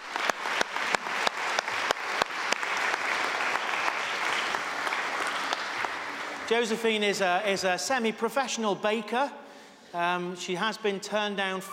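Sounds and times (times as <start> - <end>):
audience applause: 0.0 - 6.8
speech: 6.5 - 11.7.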